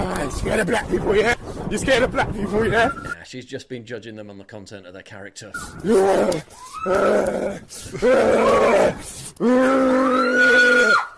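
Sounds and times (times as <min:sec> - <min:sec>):
speech: 0:00.3 - 0:11.1
man imitating an animal's growl: 0:05.8 - 0:10.1.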